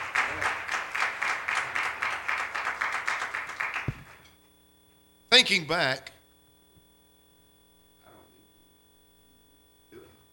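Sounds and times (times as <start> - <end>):
people clapping hands in praise: 0.0 - 4.4
speech: 5.4 - 6.1.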